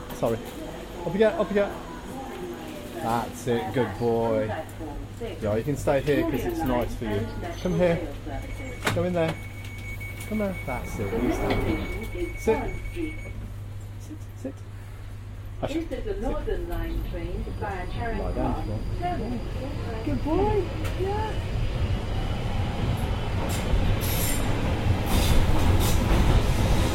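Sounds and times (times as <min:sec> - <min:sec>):
London Underground Northern Line train by Charing Cross: 0:00.0 - 0:26.9
speech: 0:00.2 - 0:01.9, 0:03.0 - 0:09.5, 0:10.3 - 0:13.3, 0:14.1 - 0:14.7, 0:15.6 - 0:21.6, 0:23.5 - 0:24.8.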